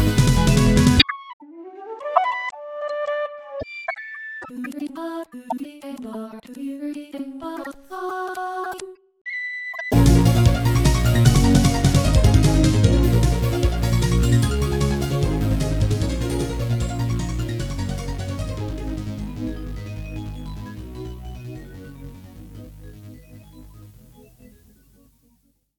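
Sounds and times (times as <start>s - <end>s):
midi stage music: 0.0s - 1.0s, 9.9s - 20.7s.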